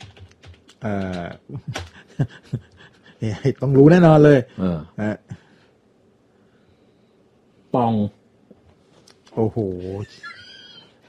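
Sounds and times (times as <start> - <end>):
typing on a computer keyboard: 0.0 - 2.2
speech: 0.8 - 5.4, 7.8 - 8.2, 9.4 - 10.4.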